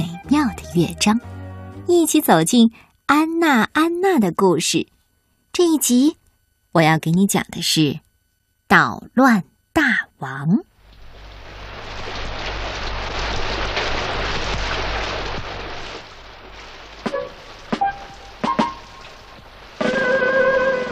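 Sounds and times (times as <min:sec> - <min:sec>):
speech: 0:00.7 - 0:01.3, 0:01.9 - 0:05.0, 0:05.6 - 0:06.2, 0:06.8 - 0:08.0, 0:08.7 - 0:10.7
rain falling outside: 0:10.7 - 0:20.9.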